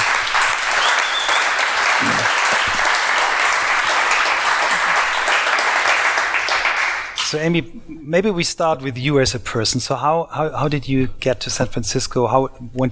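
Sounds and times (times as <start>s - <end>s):
audience applause at a live podcast: 0.0s - 7.2s
speech: 7.3s - 12.9s.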